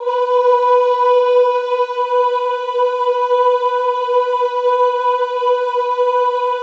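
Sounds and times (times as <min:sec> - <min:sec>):
classical choir singing ooh: 0:00.0 - 0:06.6.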